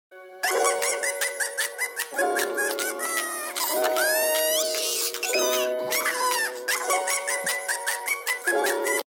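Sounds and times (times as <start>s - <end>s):
baby laughing: 0.4s - 9.0s.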